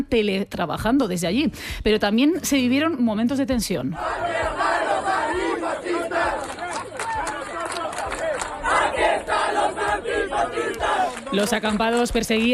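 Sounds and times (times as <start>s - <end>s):
speech: 0.0s - 6.4s, 9.0s - 12.5s
protest crowd chanting a slogan: 4.0s - 11.8s.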